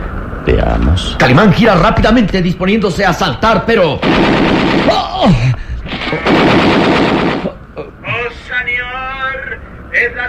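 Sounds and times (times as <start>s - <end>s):
speech: 0.4s - 7.2s, 9.9s - 10.2s
machine gun fire sound effect in a radio drama: 4.0s - 7.6s.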